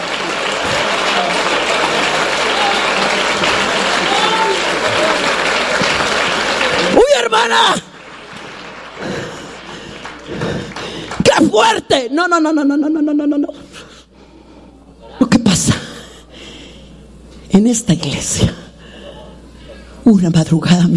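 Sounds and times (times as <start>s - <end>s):
audience applause: 0.0s - 11.8s
speech: 7.4s - 7.9s, 11.5s - 13.6s, 17.6s - 18.6s, 20.0s - 20.9s.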